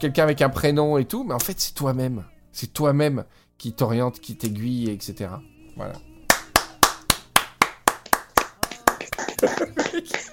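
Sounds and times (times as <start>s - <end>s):
speech: 0.0s - 6.1s, 9.4s - 10.3s
person clapping hands: 6.3s - 10.3s
laughter: 8.9s - 10.3s.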